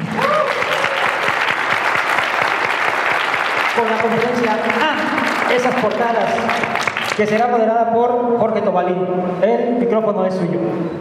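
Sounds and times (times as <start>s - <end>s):
audience applause: 0.0s - 7.5s
speech: 3.8s - 11.0s.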